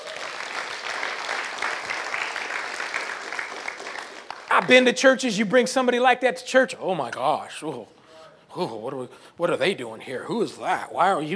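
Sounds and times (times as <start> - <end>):
audience applause: 0.0 - 4.8
speech: 4.6 - 11.3.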